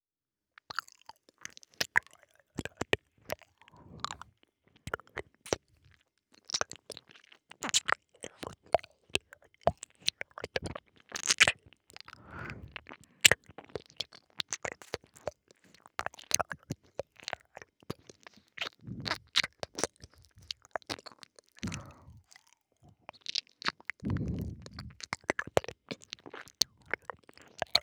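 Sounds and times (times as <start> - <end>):
fox girl ear licking sounds: 1.2 - 27.8.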